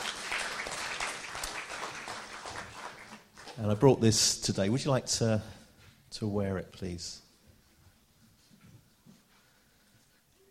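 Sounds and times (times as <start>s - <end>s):
round of applause: 0.0s - 3.8s
speech: 3.6s - 7.2s.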